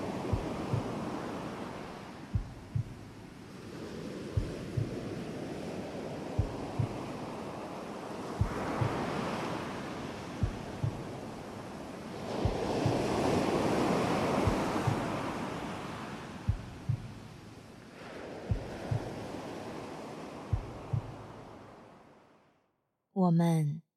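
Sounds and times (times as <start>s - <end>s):
rhythmic wind outside window: 0.0s - 22.2s
soft low thumps: 0.3s - 1.1s, 2.3s - 3.4s, 4.4s - 5.1s, 6.4s - 7.1s, 8.4s - 9.1s, 10.4s - 11.4s, 12.4s - 13.3s, 14.4s - 15.3s, 16.4s - 17.7s, 18.5s - 19.2s, 20.5s - 21.6s
speech: 23.2s - 23.7s.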